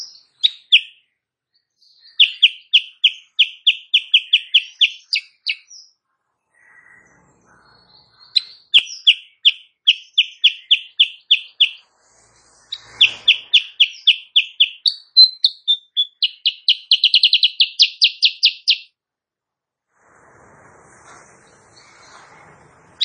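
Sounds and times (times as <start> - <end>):
Sooty-headed bulbul singing in the morning: 0.0 - 6.0, 6.6 - 11.8, 12.7 - 18.9.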